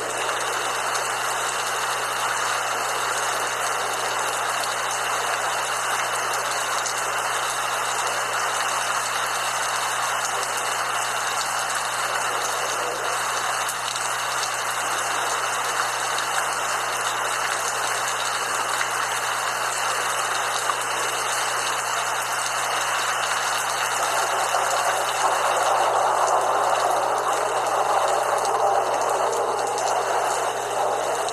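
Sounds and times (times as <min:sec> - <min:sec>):
light rain falling: 0:00.0 - 0:31.3.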